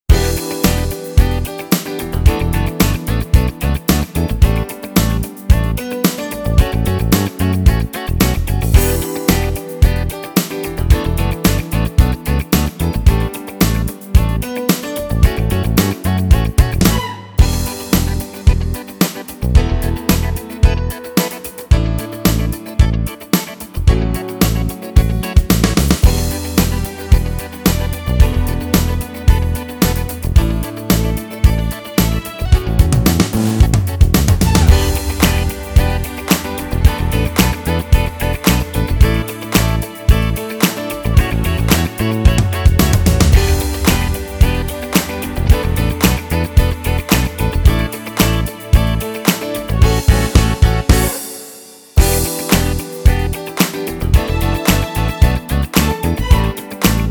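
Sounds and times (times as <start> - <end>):
funky disco music: 0.1 - 57.0.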